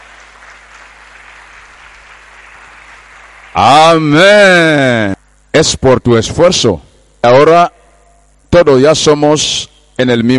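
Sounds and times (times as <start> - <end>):
audience applauding: 0.0 - 3.8
speech: 3.5 - 7.8, 8.5 - 10.3.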